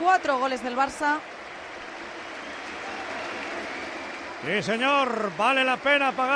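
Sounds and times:
stadium crowd applauding: 0.0s - 6.3s
speech: 0.2s - 1.4s, 4.4s - 6.3s.

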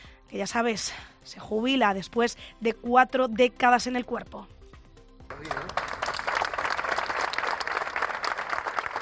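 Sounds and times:
speech: 0.3s - 4.6s, 5.4s - 5.8s
colleagues applauding: 5.3s - 8.9s.

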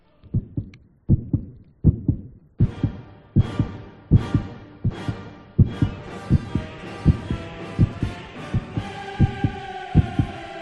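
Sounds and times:
steady thumping fetal heartbeat: 0.2s - 10.4s
dramatic funeral requiem music with swelling orchestral tones: 2.6s - 10.6s.

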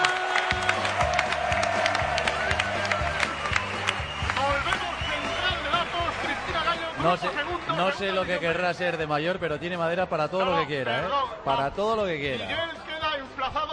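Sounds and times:
crowd applause and cheering: 0.0s - 9.2s
speech: 7.0s - 12.7s.

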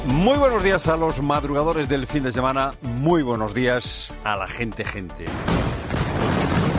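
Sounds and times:
speech: 0.1s - 6.3s
explosions from intense overnight aerial bombing of Beirut with heavy munitions: 5.3s - 6.7s.

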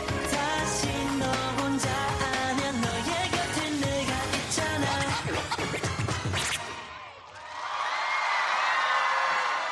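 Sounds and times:
loud pop music with a heavy, punchy beat: 0.0s - 7.0s
Korean festival crowd cheering and screaming at the World K-Pop Festival in Chingwon: 6.4s - 9.7s.

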